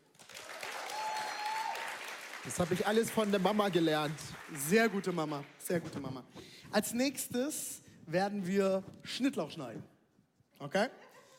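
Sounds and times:
applause: 0.0 - 5.8
speech: 2.4 - 9.9, 10.6 - 11.0.

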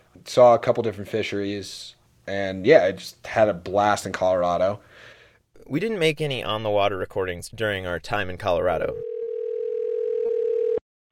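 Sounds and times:
speech: 0.3 - 9.1
telephone ringback tone on an outgoing call: 9.0 - 10.8.

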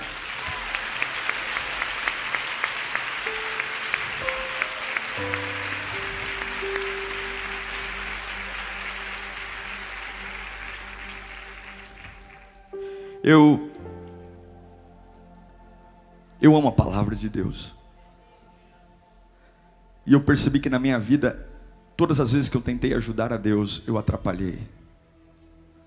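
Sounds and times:
audience applause: 0.0 - 13.0
speech: 13.2 - 13.7, 16.4 - 17.8, 20.1 - 24.8.

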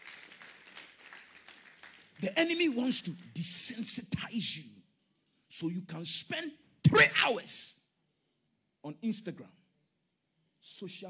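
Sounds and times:
audience clapping: 0.0 - 3.8
speech: 2.2 - 4.8, 5.6 - 7.8, 8.8 - 9.6, 10.7 - 11.0.

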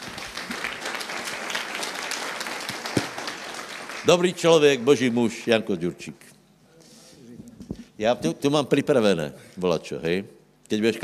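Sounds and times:
audience applause: 0.0 - 5.2
speech: 4.0 - 6.2, 8.0 - 11.0.

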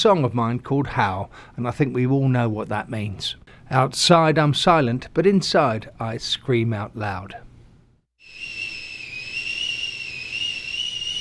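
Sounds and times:
speech: 0.0 - 7.5
tea kettle whistling in the kitchen: 8.2 - 11.2.

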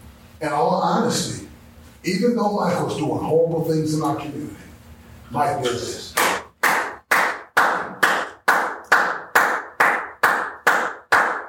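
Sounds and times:
speech: 0.4 - 4.7, 5.3 - 6.0
single person clapping hands in a slow steady rhythm: 6.1 - 11.4.

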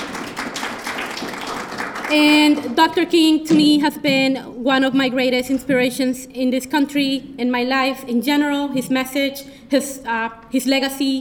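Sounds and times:
audience applause: 0.0 - 2.2
speech: 2.1 - 11.1.

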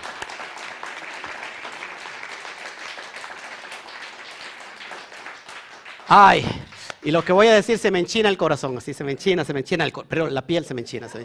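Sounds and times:
audience applause: 0.0 - 7.6
speech: 6.1 - 11.2.

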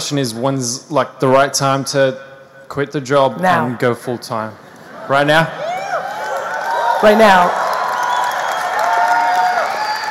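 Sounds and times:
speech: 0.1 - 5.6, 7.0 - 7.6
audience steady loud applause: 5.1 - 10.0
whooping cheers: 5.5 - 10.0.

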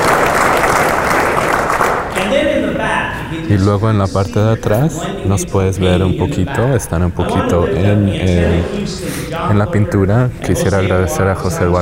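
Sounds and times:
loud audience applause: 0.0 - 2.3
speech: 3.3 - 11.8.

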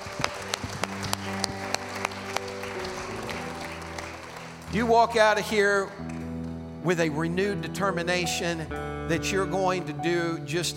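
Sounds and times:
audience hand clapping: 0.0 - 6.7
speech: 4.7 - 6.2, 6.8 - 10.7.

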